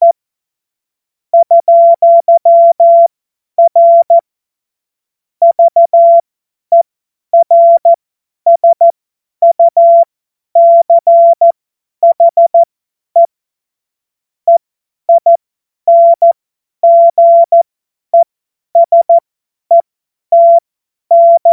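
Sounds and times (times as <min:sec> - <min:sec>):
CW Morse code beeps: 0:01.4 - 0:04.2, 0:05.4 - 0:06.8, 0:07.4 - 0:13.3, 0:14.5 - 0:17.6, 0:18.2 - 0:21.5.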